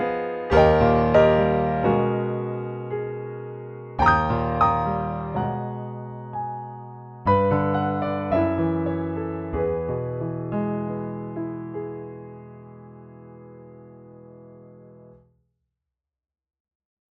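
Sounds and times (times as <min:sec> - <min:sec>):
Steinway D grand piano: 0:00.0 - 0:15.2.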